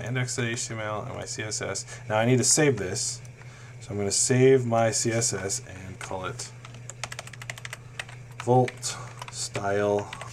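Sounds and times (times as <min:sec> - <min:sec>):
speech: 0:00.0 - 0:06.6, 0:08.4 - 0:10.2
computer keyboard typing a filename: 0:06.6 - 0:10.3.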